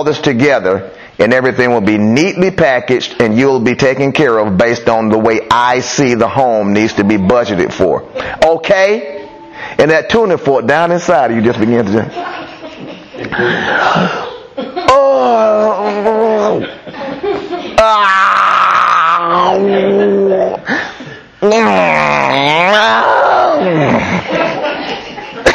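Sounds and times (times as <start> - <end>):
speech: 0.0 - 12.4, 13.2 - 16.8, 17.8 - 18.3, 19.3 - 20.8, 21.5 - 24.5
laughter: 12.1 - 18.0, 19.2 - 21.2, 23.5 - 25.5
person groaning: 14.9 - 16.7, 17.8 - 20.8, 21.4 - 24.2.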